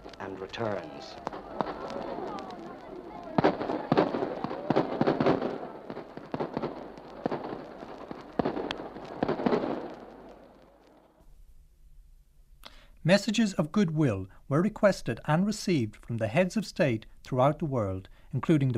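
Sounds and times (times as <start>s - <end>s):
rifle fire crackling down a long line: 0.0s - 11.2s
speech: 0.5s - 1.3s, 13.1s - 18.7s.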